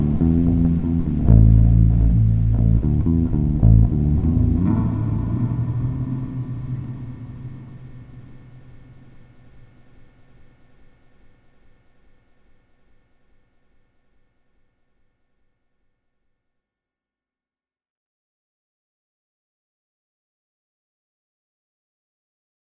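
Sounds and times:
improvised ambient bass jam in the key of D: 0.0s - 9.2s.

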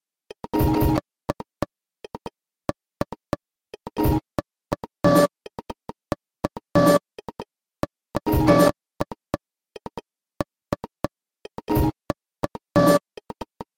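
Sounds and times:
fake beats: 0.5s - 1.5s, 3.8s - 5.6s, 6.5s - 7.3s, 8.2s - 8.7s, 11.5s - 13.1s.

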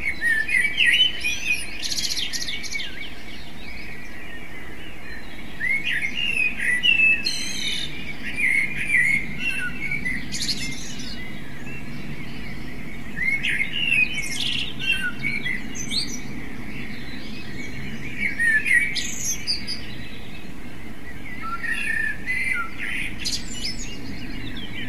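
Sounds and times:
common blackbird song: 0.0s - 24.8s.

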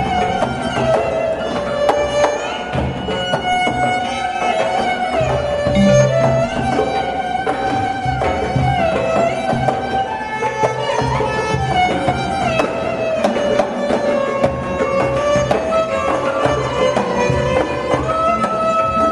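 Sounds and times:
sirangi improvisation in India: 0.0s - 19.0s.

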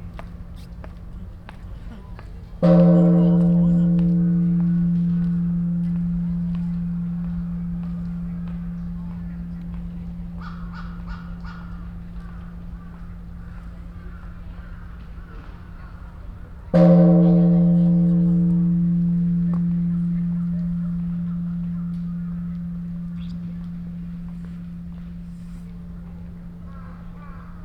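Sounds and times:
bells of time ringing in Ueno: 2.6s - 13.6s, 16.8s - 27.6s.

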